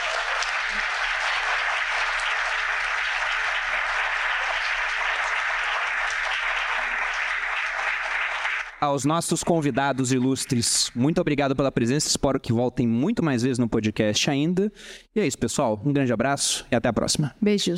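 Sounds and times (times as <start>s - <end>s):
audience applause: 0.0s - 10.9s
speech: 8.8s - 17.7s.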